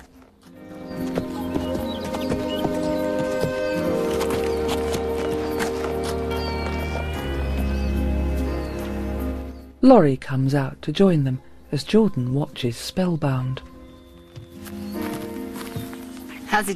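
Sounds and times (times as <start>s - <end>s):
horse hooves clopping as it walks up: 0.0s - 9.1s, 14.1s - 16.7s
speech: 9.8s - 13.7s, 16.6s - 16.7s.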